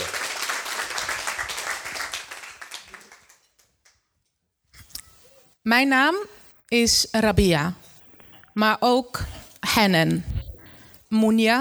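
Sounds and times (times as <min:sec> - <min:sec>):
loud applause: 0:00.0 - 0:03.6
speech: 0:05.7 - 0:07.8, 0:08.6 - 0:10.3, 0:11.1 - 0:11.5.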